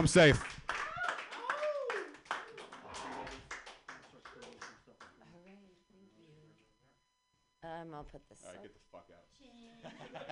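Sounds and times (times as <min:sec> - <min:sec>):
speech: 0:00.0 - 0:00.5, 0:08.1 - 0:10.3
audience clapping for a comedian at a comedy show: 0:00.0 - 0:05.2
laughter: 0:09.7 - 0:10.3.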